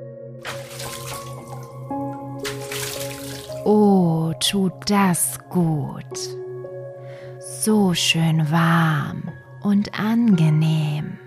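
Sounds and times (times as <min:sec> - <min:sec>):
bath water splashing as someone climbs into a tub: 0:00.4 - 0:03.7
speech: 0:04.4 - 0:06.5, 0:07.4 - 0:11.2.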